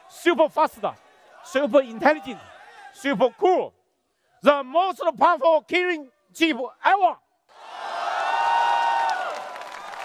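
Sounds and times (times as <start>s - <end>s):
speech: 0.2s - 3.8s, 4.4s - 7.2s
launch-event audience cheering as a new phone and its Kirin chip are unveiled: 7.5s - 10.0s.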